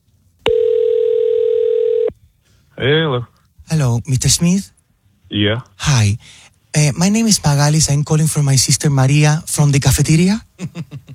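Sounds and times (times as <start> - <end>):
faint noise: 0.0 - 11.1
telephone dial tone: 0.5 - 2.1
speech: 2.8 - 11.0.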